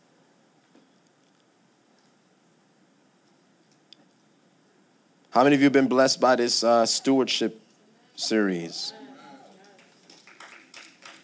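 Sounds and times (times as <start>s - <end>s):
speech: 5.4s - 7.6s, 8.2s - 9.0s
hand claps: 9.6s - 11.2s.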